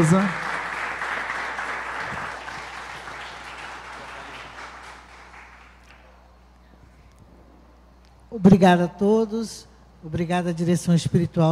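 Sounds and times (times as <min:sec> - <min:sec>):
speech: 0:00.0 - 0:00.4, 0:08.3 - 0:11.4
audience applause: 0:00.0 - 0:06.2.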